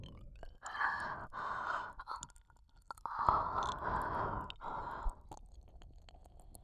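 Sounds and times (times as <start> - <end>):
ear licking: 0.6 - 5.4.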